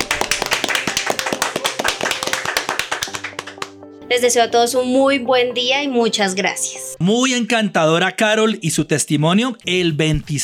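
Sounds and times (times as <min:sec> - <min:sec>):
audience applause: 0:00.0 - 0:03.8
speech: 0:04.1 - 0:10.4.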